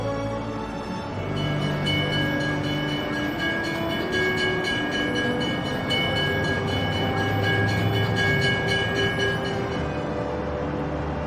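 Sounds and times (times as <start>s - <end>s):
early 20th-century tram rolling along rails on Qianmen Street in Beijing: 0.0s - 11.2s
sustained high whining metallic tones of tram: 1.1s - 10.4s
rhythmic clicking of tram on rails: 1.2s - 10.0s.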